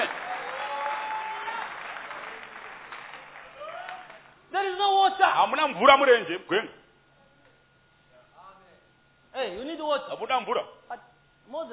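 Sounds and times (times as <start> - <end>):
church congregation clapping: 0.0 - 4.4
speech: 5.3 - 6.8, 9.8 - 11.7.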